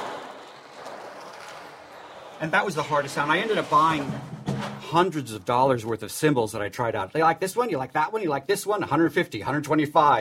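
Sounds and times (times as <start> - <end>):
speech: 2.4 - 4.3, 4.9 - 10.1
ocean drum shaken to make a splash: 2.4 - 4.9.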